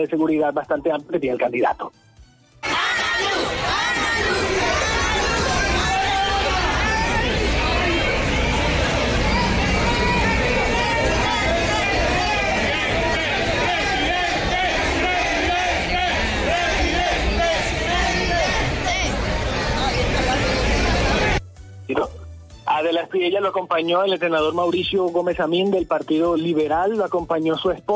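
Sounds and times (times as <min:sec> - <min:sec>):
speech: 0:00.0 - 0:02.1, 0:21.9 - 0:22.2, 0:22.8 - 0:27.9
hundreds of supporters cheering a candidate: 0:02.6 - 0:21.4.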